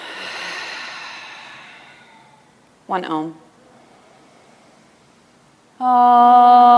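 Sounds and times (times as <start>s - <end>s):
deep breath during a guided yoga session: 0.0s - 2.8s, 3.5s - 5.2s
speech: 2.9s - 3.5s, 5.8s - 6.6s.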